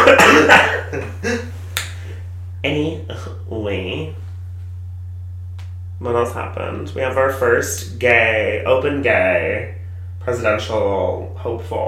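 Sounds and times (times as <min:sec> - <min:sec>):
low hum: 0:00.0 - 0:11.8
speech: 0:00.1 - 0:01.5, 0:02.6 - 0:04.2, 0:06.0 - 0:11.8
finger snaps given in approval: 0:01.8 - 0:02.0, 0:05.6 - 0:05.8.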